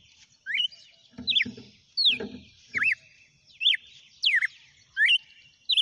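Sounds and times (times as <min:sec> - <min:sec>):
red-cowled cardinal song: 0:00.5 - 0:00.8, 0:03.6 - 0:05.7.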